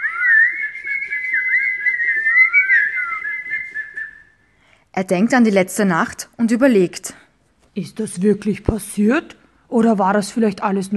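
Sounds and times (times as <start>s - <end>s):
warbling whistle imitating birdsong: 0.0s - 4.4s
speech: 5.0s - 7.2s, 7.8s - 10.9s.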